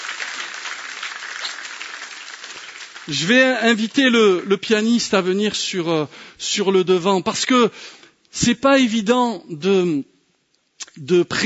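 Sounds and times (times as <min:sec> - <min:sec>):
church congregation applauding during a sermon: 0:00.0 - 0:04.5
speech: 0:03.1 - 0:10.1, 0:10.9 - 0:11.4.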